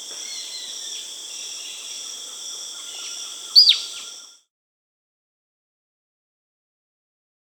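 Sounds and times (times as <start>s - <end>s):
Dot-winged Antwren Microrhopias quixensis calling in Peru: 0.2s - 4.4s.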